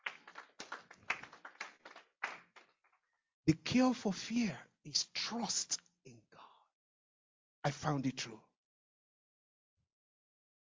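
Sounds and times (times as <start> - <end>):
audience clapping: 0.0 - 3.0
speech: 3.5 - 5.8, 7.6 - 8.5.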